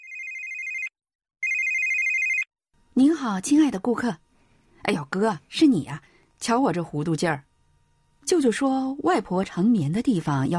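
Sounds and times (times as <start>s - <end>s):
telephone ringing: 0.0s - 2.5s
speech: 3.0s - 4.2s, 4.8s - 7.5s, 8.2s - 10.5s.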